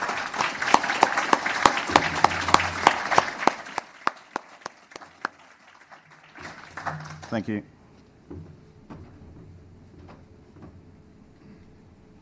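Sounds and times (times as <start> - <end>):
audience applause: 0.0 - 7.6
speech: 7.3 - 8.6.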